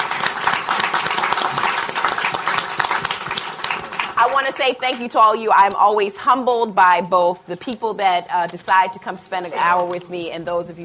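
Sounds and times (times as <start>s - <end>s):
audience applause: 0.0s - 4.7s
speech: 4.4s - 10.8s.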